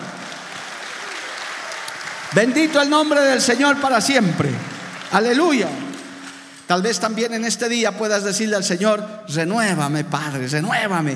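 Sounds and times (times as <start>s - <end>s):
crowd applause: 0.0s - 6.6s
speech: 2.3s - 5.8s, 6.7s - 11.1s.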